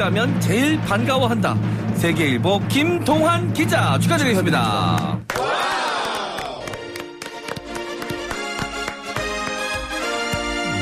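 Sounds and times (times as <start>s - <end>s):
speech: 0.0s - 5.8s
audience clapping: 4.8s - 10.8s
crowd cheering: 5.2s - 8.4s.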